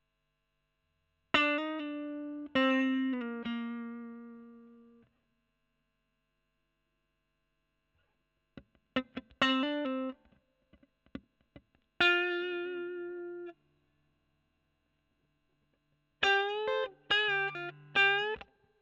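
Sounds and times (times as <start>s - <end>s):
overdriven electric guitar: 1.4s - 5.0s, 8.6s - 13.6s, 16.2s - 18.6s.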